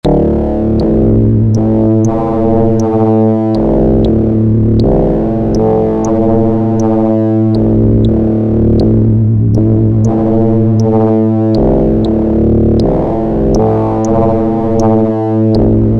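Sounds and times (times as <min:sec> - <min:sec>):
synthesizer foldspace sound: 0:00.0 - 0:15.9.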